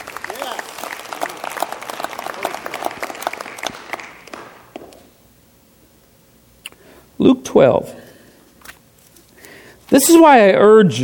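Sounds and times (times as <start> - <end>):
audience applause: 0.0 - 4.9
speech: 7.2 - 8.0, 9.9 - 11.0.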